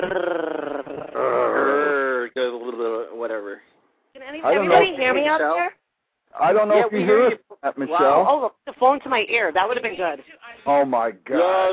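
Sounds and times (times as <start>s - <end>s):
speech: 0.0s - 0.4s, 4.4s - 5.8s, 6.4s - 11.7s
people imitating a growl: 0.0s - 3.1s.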